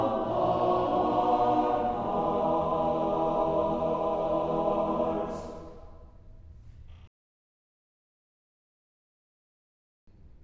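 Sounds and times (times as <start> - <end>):
choir singing: 0.0 - 6.1.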